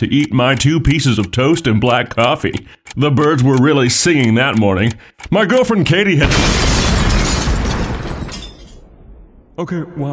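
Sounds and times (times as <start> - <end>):
speech: 0.0 - 7.1, 9.6 - 10.1
bomb explosion: 6.2 - 9.6.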